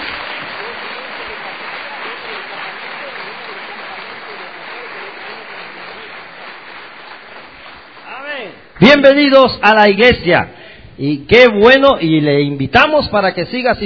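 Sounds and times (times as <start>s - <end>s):
church congregation applause welcoming newcomers: 0.0s - 10.2s
speech: 8.9s - 13.8s.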